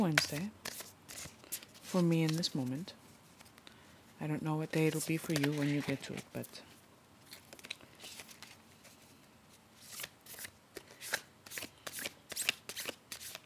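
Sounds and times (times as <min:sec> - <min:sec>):
speech: 0:00.0 - 0:00.8, 0:01.9 - 0:03.0, 0:04.2 - 0:06.7
tarot cards being shuffled: 0:00.1 - 0:03.7, 0:04.8 - 0:06.5, 0:07.2 - 0:09.0, 0:09.8 - 0:13.4.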